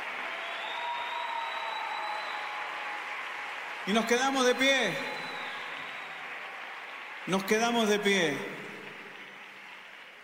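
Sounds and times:
crowd applause: 0.0 - 10.2
speech: 3.9 - 5.2, 7.2 - 8.6.

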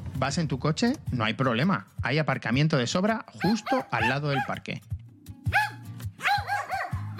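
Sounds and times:
speech: 0.2 - 4.9
dog barking: 3.4 - 4.6, 5.5 - 7.1.

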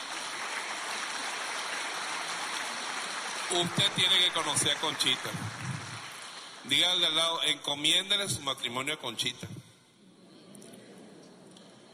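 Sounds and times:
audience applause: 0.0 - 7.2
speech: 3.5 - 5.7, 6.7 - 9.6.

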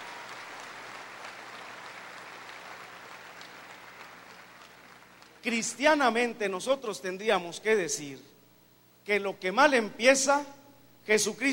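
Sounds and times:
audience applause: 0.0 - 5.4
speech: 5.4 - 8.3, 9.0 - 11.5.

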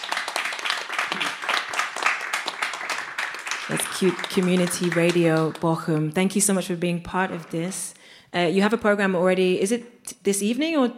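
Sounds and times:
audience applause: 0.0 - 6.1, 7.1 - 7.9
speech: 3.7 - 10.9.

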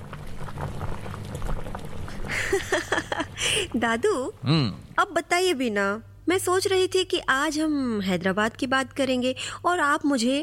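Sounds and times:
water gently boiling on gas stove: 0.0 - 6.0
speech: 2.5 - 10.4.

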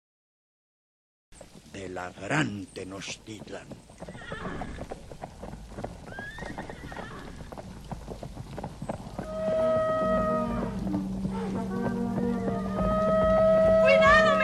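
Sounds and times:
hooves clip-clopping: 1.4 - 14.4
speech: 1.8 - 4.4
horse whinnying: 4.0 - 5.0, 6.0 - 7.5, 9.2 - 14.4
low rumble: 9.1 - 14.4.

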